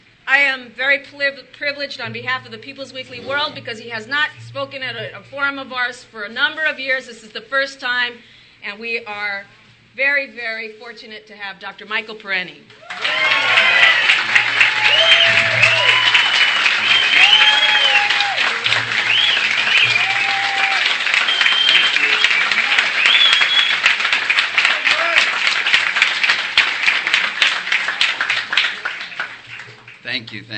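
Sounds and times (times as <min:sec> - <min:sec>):
speech: 0:00.3 - 0:13.9, 0:30.1 - 0:30.5
audience applause: 0:12.8 - 0:30.5.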